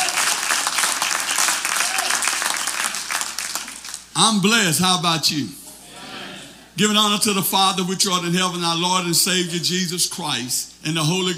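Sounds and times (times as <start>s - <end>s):
audience applauding: 0.0s - 4.1s
speech: 4.2s - 5.6s, 6.8s - 11.3s.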